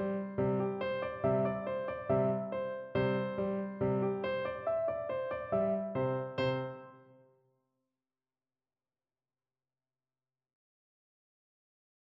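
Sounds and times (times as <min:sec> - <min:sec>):
piano piece: 0:00.0 - 0:07.3.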